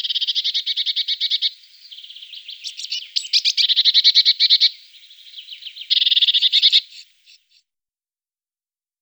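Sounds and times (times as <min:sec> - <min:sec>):
great tit song of clear whistled notes: 0:00.0 - 0:07.6.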